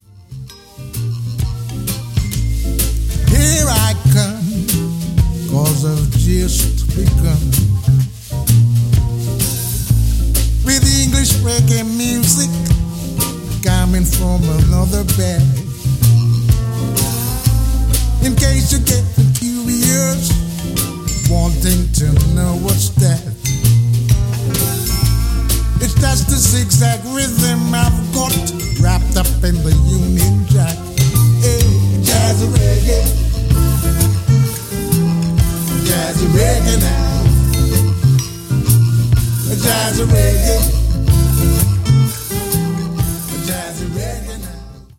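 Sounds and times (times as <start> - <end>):
jazzy reggae music: 0.0 - 44.9.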